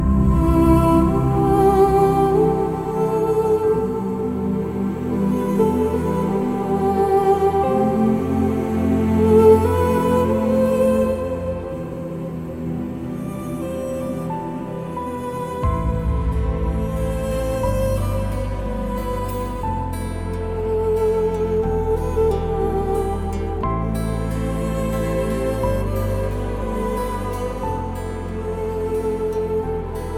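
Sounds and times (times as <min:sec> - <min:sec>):
sad background music: 0:00.0 - 0:30.1.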